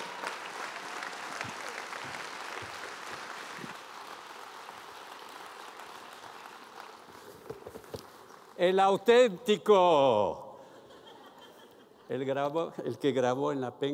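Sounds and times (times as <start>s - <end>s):
audience applause: 0.0s - 8.6s
speech: 8.6s - 10.4s, 12.1s - 13.9s
laughter: 10.6s - 12.3s.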